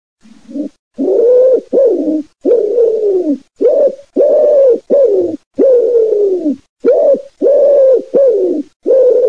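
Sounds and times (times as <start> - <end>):
wood pigeon calling: 0.2 - 9.2.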